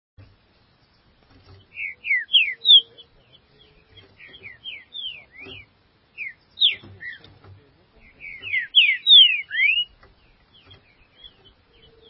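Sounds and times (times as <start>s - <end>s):
green-winged saltator singing: 1.7s - 3.1s, 3.8s - 7.3s, 8.0s - 10.0s.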